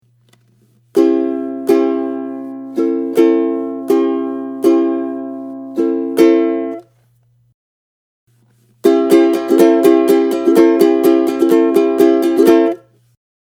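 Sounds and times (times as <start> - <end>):
ukulele strumming: 0.9 - 6.9, 8.8 - 12.9.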